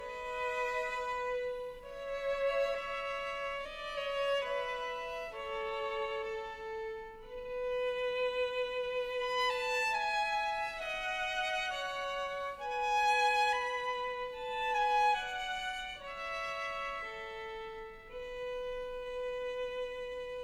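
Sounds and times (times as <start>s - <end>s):
two violins playing a duo on a Slovakian song: 0.0s - 20.4s.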